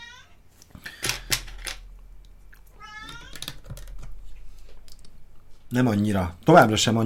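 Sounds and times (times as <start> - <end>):
cat meowing: 0.0 - 0.4, 2.6 - 3.7
small plastic pieces being handled: 0.8 - 2.0, 3.0 - 4.2
speech: 5.7 - 7.0.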